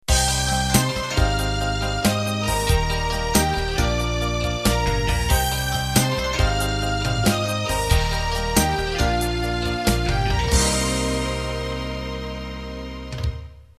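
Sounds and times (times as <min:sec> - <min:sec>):
slow rock ending: 0:00.1 - 0:13.4.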